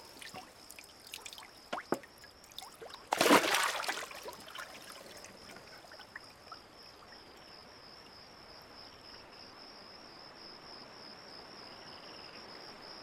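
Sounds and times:
fish thrown into lake water: 0.0s - 6.2s
light water drips: 0.0s - 7.5s.

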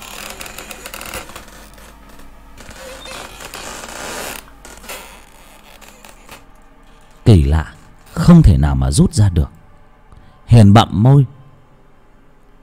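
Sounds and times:
wooden bolt sliding against a wooden door with creak: 0.0s - 6.6s
speech: 7.3s - 9.6s, 10.5s - 11.4s.

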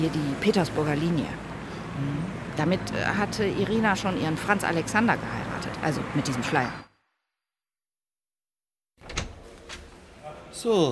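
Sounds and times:
speech: 0.0s - 6.9s, 10.6s - 10.9s
door being closed: 9.0s - 10.1s.

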